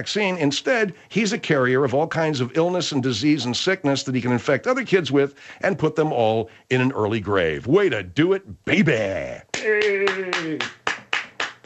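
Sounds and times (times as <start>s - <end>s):
speech: 0.0s - 10.8s
slow evenly spaced hand claps: 9.5s - 11.6s.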